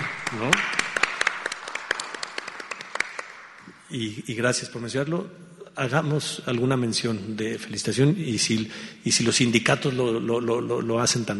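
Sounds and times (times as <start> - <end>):
applause from a small group: 0.0 - 3.6
speech: 0.3 - 0.8, 3.9 - 11.3.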